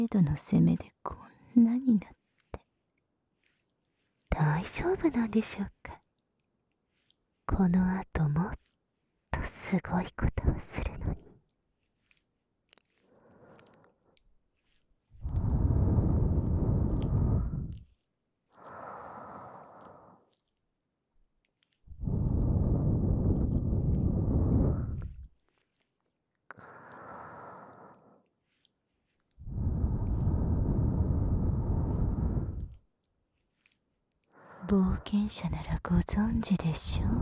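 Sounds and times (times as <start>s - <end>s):
speech: 0.0s - 2.2s, 4.3s - 6.0s, 7.5s - 8.7s, 9.4s - 11.2s, 34.7s - 37.2s
breathy puffs of air blown into the ear: 15.3s - 17.7s, 22.0s - 25.2s, 29.4s - 32.7s.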